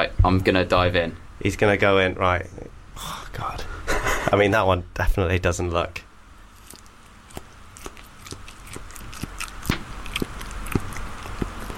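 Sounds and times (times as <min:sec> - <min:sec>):
soft hiss: 0:00.0 - 0:11.7
speech: 0:00.2 - 0:03.6, 0:04.3 - 0:06.0
crunchy biting and chewing of food: 0:06.5 - 0:11.7.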